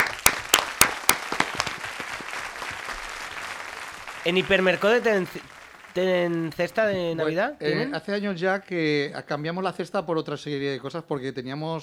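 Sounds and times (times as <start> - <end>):
audience applause: 0.0 - 7.5
speech: 4.2 - 11.8.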